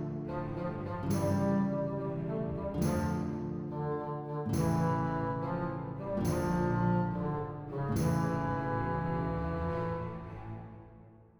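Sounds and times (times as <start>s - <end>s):
music in a hall: 0.0s - 11.3s.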